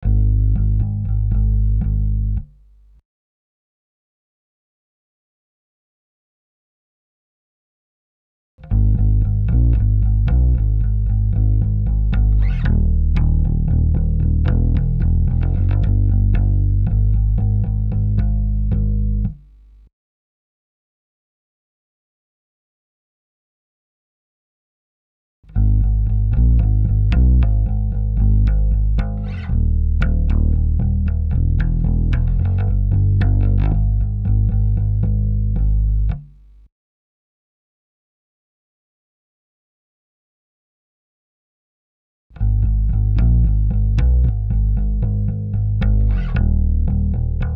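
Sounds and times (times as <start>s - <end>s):
bass: 0.0s - 3.0s, 8.6s - 19.9s, 25.4s - 36.7s, 42.3s - 47.5s.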